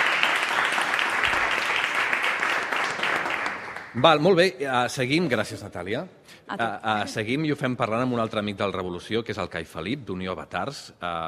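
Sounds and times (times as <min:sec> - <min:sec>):
audience applause: 0:00.0 - 0:04.3
speech: 0:04.0 - 0:11.2.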